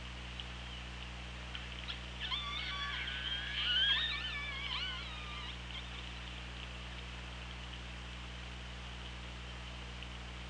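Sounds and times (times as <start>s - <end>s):
low electrical hum: 0.0s - 10.4s
orca whistles and calls: 1.9s - 6.1s.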